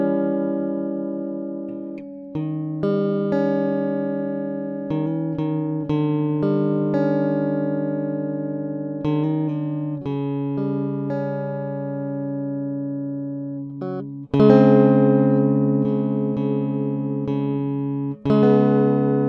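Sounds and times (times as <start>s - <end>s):
guitar chords: 0.0s - 19.2s.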